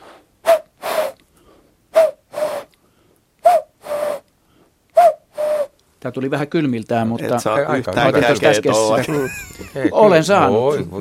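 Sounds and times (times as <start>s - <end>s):
person whistling an imitation of a common cuckoo call: 0.5s - 1.2s, 2.0s - 2.7s, 3.4s - 4.2s, 5.0s - 5.8s
speech: 6.0s - 10.9s
laughter: 8.2s - 10.2s.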